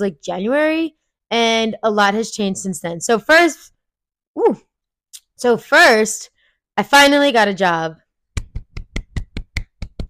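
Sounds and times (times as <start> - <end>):
speech: 0.0 - 3.8, 4.4 - 4.7, 5.4 - 8.0
hands clapping: 8.4 - 10.0.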